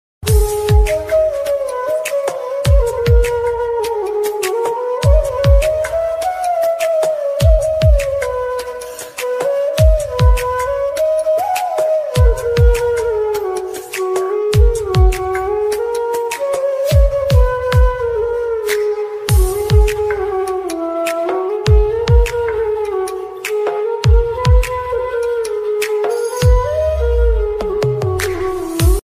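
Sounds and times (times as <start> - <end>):
flute music ringtone: 0.3 - 29.0.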